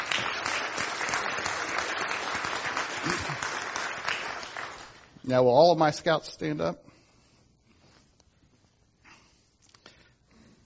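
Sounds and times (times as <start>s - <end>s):
audience applause: 0.0s - 5.1s
speech: 5.3s - 6.9s.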